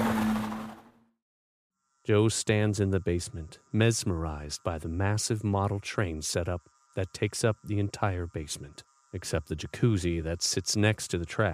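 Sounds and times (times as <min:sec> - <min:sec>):
car speeding away: 0:00.0 - 0:00.9
speech: 0:02.1 - 0:11.5.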